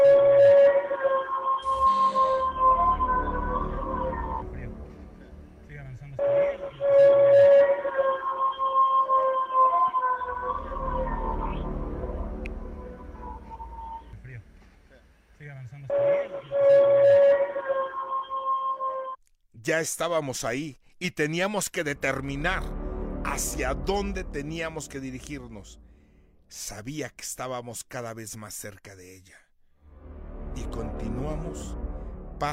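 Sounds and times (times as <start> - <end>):
eerie wailing scream: 0.0 - 4.6, 6.2 - 14.2, 15.9 - 19.2
speech: 19.7 - 25.8, 26.5 - 29.4, 30.6 - 31.8, 32.4 - 32.5.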